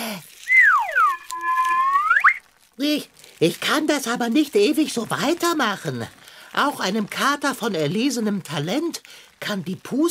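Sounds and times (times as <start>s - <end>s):
shrill pipe whistle: 0.4s - 2.4s
speech: 2.8s - 10.0s.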